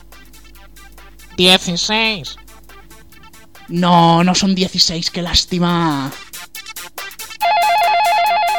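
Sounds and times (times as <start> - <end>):
speech: 1.4 - 2.4, 3.7 - 6.2
electronic telephone ring for a radio call-in contest: 7.4 - 8.5.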